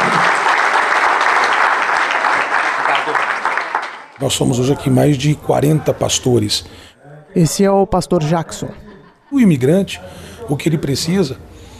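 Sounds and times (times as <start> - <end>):
audience applause: 0.0 - 4.2
speech: 4.2 - 11.5
laughter: 8.2 - 9.9.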